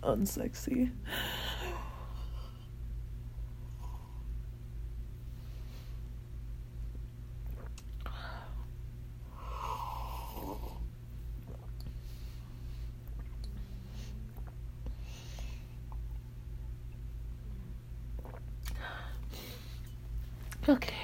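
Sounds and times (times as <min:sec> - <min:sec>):
speech: 0:00.0 - 0:01.6
steady low hum: 0:00.0 - 0:21.0
person sipping a drink: 0:07.4 - 0:08.7, 0:09.3 - 0:16.1, 0:18.1 - 0:20.6.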